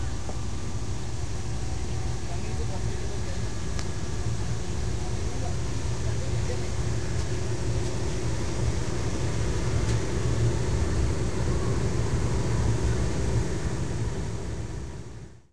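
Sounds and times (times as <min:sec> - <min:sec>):
wind: 0:00.0 - 0:15.5.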